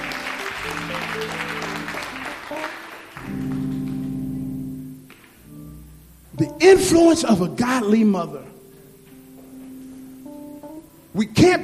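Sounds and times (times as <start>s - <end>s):
audience hand clapping: 0.0s - 5.5s
speech: 0.6s - 1.7s, 6.6s - 8.5s, 11.2s - 11.6s.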